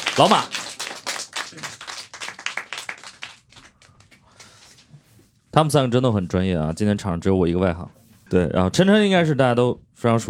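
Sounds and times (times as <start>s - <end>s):
audience applause: 0.0s - 3.8s
speech: 0.2s - 0.6s, 5.6s - 10.2s.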